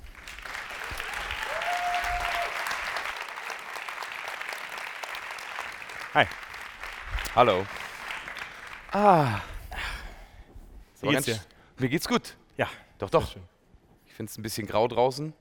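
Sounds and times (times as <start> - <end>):
audience applause welcoming a musician: 0.0 - 9.5
speech: 6.2 - 6.4, 7.4 - 7.8, 8.9 - 9.5, 11.0 - 13.5, 14.2 - 15.3.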